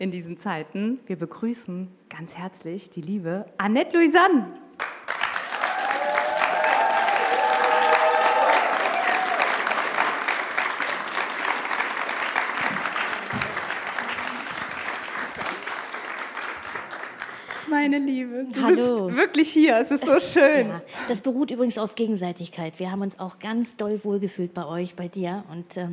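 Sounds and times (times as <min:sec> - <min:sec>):
speech: 0:00.0 - 0:04.9, 0:17.8 - 0:25.9
audience applause and cheering: 0:04.8 - 0:17.9
laughter: 0:11.6 - 0:15.9.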